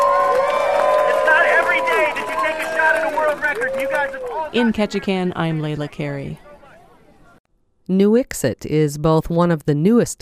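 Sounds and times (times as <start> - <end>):
crowd applause: 0.0 - 5.7
crowd cheering: 0.0 - 7.4
speech: 3.6 - 6.4, 7.9 - 10.2.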